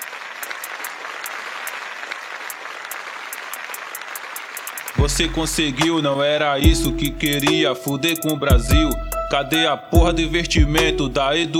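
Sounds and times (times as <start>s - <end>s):
applause: 0.0s - 5.0s
speech: 5.0s - 11.5s.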